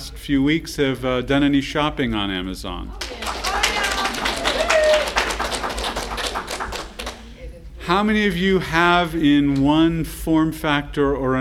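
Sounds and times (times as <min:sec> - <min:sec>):
speech: 0:00.3 - 0:03.2, 0:07.9 - 0:11.3
murmur of voices: 0:02.8 - 0:09.6
audience applause: 0:03.0 - 0:07.3
person whooping: 0:03.5 - 0:05.4.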